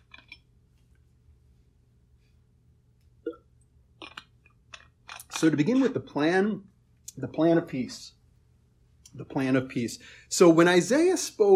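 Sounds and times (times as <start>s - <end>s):
low steady hum: 0.0s - 11.5s
person taking a sip of water: 3.3s - 4.3s
wet mouth clicks: 4.0s - 4.3s
speech: 5.4s - 8.2s, 9.1s - 11.5s.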